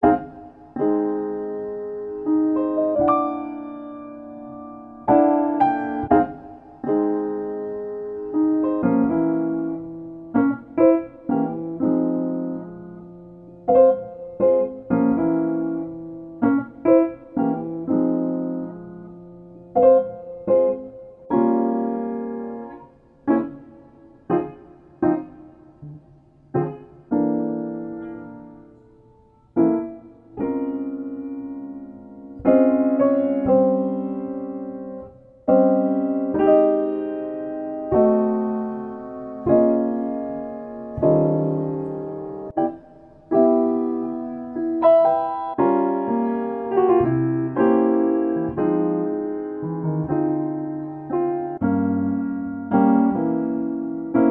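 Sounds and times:
downtempo piano music: 0:00.0 - 0:54.2.

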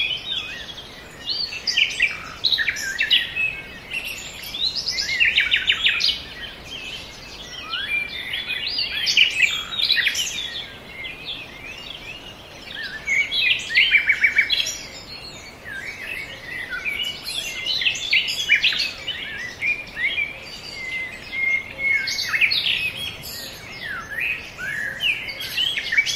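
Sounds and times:
dawn chorus of many birds: 0:00.0 - 0:26.1.

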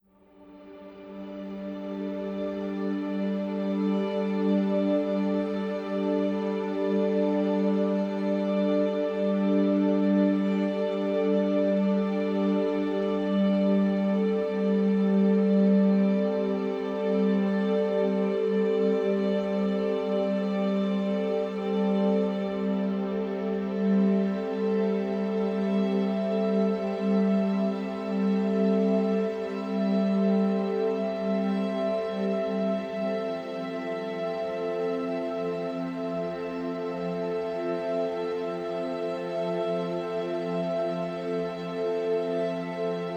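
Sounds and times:
spa sleep music: 0:00.5 - 0:43.1.

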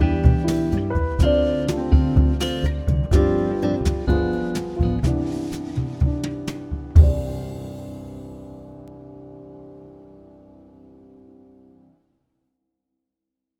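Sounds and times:
classic restaurant jazz music: 0:00.0 - 0:10.4.

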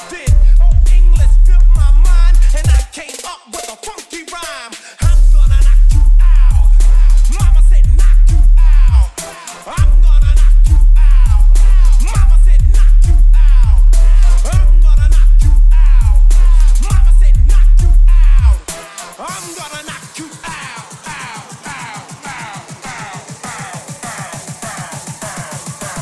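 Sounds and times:
bass-boosted trap and bass music: 0:00.0 - 0:26.0.

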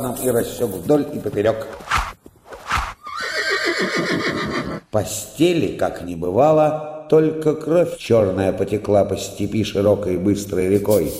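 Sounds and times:
speech: 0:00.0 - 0:02.0, 0:04.9 - 0:11.1
horse snorting: 0:01.7 - 0:04.9
horse whinnying: 0:02.8 - 0:04.9.

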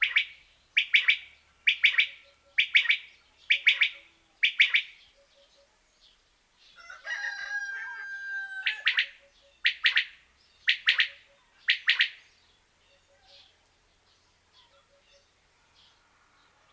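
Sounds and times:
common quail giving two- and three-note phrases: 0:00.0 - 0:05.7, 0:07.9 - 0:12.2.

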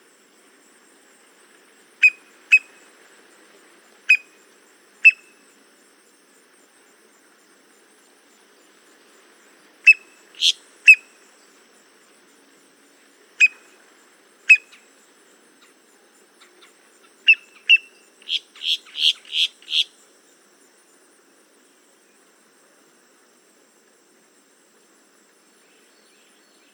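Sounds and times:
boat-tailed grackle calls: 0:02.0 - 0:02.8, 0:04.1 - 0:04.4, 0:05.0 - 0:05.4, 0:09.8 - 0:11.1, 0:13.4 - 0:13.8, 0:14.5 - 0:14.9, 0:16.4 - 0:20.0.

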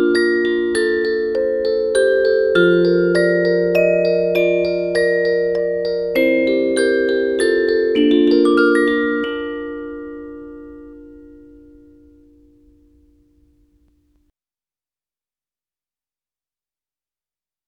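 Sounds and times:
music box lullaby: 0:00.0 - 0:13.8.

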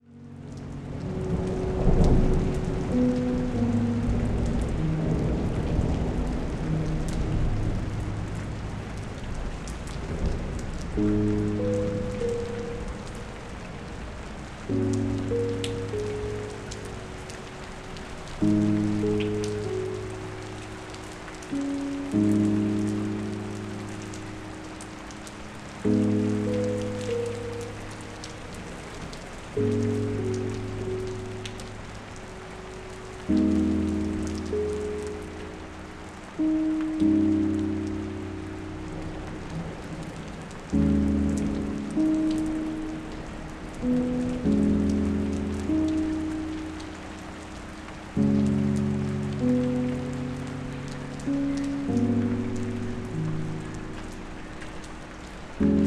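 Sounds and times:
rain: 0:00.0 - 0:55.8.

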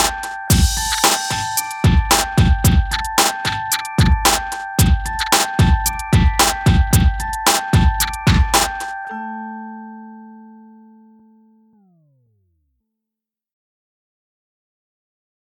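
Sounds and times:
hip hop beat: 0:00.0 - 0:09.4.

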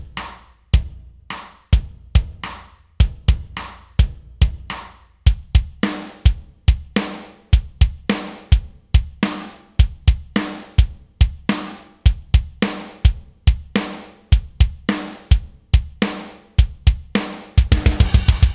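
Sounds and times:
metal drums: 0:00.1 - 0:18.5.

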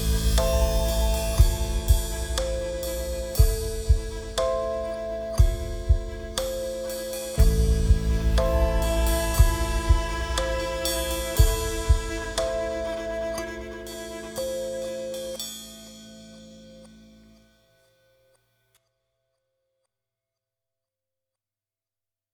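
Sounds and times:
kalimba: 0:00.0 - 0:15.8.

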